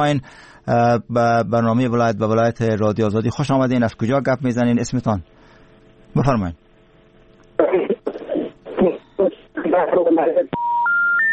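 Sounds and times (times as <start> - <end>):
speech: 0.0 - 5.4, 6.1 - 6.6, 9.8 - 10.7
listener's voice on a radio call-in telephone line: 7.6 - 10.6.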